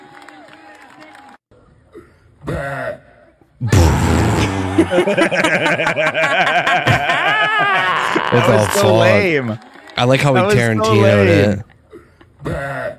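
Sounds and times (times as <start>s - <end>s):
loud low croaking burp at a burping festival: 3.6s - 5.4s
rowdy crowd cheering, whooping and laughing: 4.4s - 11.7s
speech: 4.8s - 11.7s.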